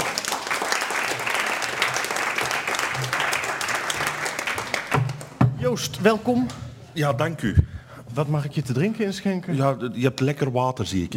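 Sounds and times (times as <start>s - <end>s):
audience applause: 0.0s - 5.4s
speech: 5.7s - 11.1s.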